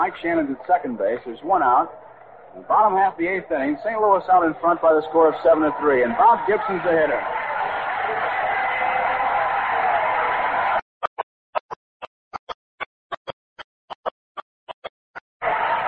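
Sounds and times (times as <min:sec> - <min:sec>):
speech: 0:00.0 - 0:07.4
stadium crowd standing ovation: 0:00.0 - 0:10.8, 0:15.4 - 0:15.8.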